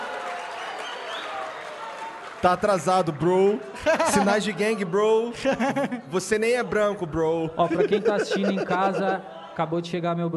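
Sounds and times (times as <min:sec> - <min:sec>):
applause: 0:00.0 - 0:03.6
speech: 0:02.4 - 0:10.3
laughter: 0:03.8 - 0:04.6, 0:05.3 - 0:06.3, 0:07.6 - 0:09.4.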